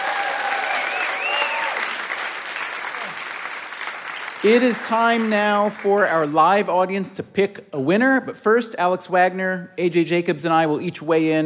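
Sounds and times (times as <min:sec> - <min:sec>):
live audience clapping: 0:00.0 - 0:06.7
speech: 0:04.4 - 0:11.4.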